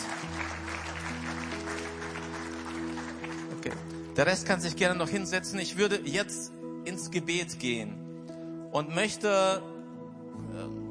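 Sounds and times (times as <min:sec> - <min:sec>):
audience applause: 0:00.0 - 0:04.1
speech: 0:03.6 - 0:08.0, 0:08.7 - 0:09.7.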